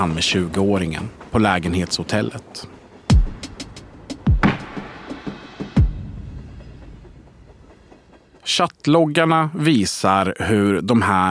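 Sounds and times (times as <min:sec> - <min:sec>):
speech: 0:00.0 - 0:02.7, 0:08.5 - 0:11.3
train rolling on rails: 0:00.0 - 0:11.3.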